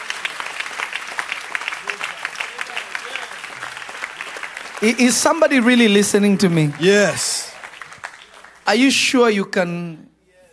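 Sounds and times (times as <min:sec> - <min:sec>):
audience clapping: 0:00.0 - 0:09.4
speech: 0:04.8 - 0:07.4, 0:08.7 - 0:10.1.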